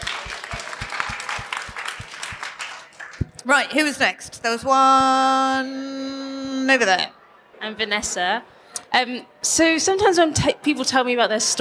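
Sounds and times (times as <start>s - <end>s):
round of applause: 0.0s - 3.4s
speech: 3.4s - 11.5s.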